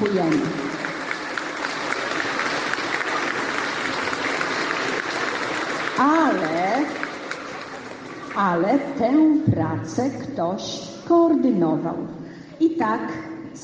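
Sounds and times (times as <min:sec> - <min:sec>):
applause: 0:00.0 - 0:09.2
speech: 0:00.1 - 0:00.7, 0:08.4 - 0:13.6.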